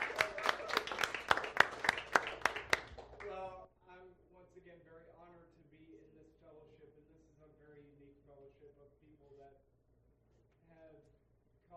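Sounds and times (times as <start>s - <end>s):
applause: 0.0s - 3.5s.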